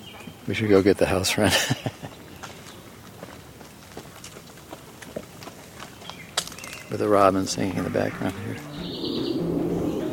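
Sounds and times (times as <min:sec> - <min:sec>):
speech: 0:00.5 - 0:02.0, 0:07.0 - 0:08.9
footsteps of someone walking around: 0:02.4 - 0:09.2.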